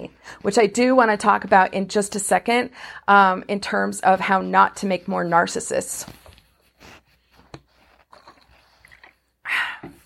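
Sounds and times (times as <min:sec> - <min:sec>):
speech: 0:00.0 - 0:06.2
sipping water: 0:06.0 - 0:10.0
gulp or slurp: 0:08.0 - 0:10.0.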